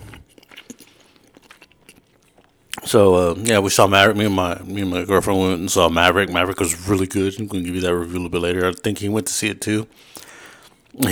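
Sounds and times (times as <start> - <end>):
crunchy chewing of food: 0.0 - 4.6, 9.9 - 11.1
speech: 2.9 - 10.2, 10.9 - 11.1.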